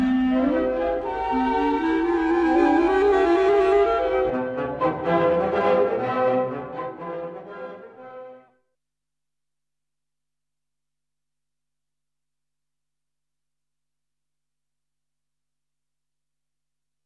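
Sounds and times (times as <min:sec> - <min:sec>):
clarinet: 0:00.0 - 0:08.6.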